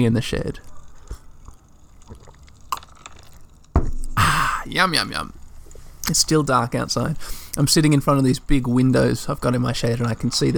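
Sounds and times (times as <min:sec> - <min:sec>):
speech: 0:00.0 - 0:00.8, 0:04.7 - 0:05.4, 0:06.1 - 0:10.5
sipping hot coffee: 0:00.7 - 0:04.6.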